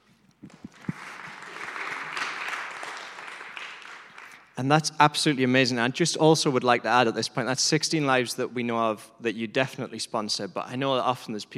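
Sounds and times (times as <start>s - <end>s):
audience applauding: 0.4s - 4.6s
speech: 4.6s - 11.5s.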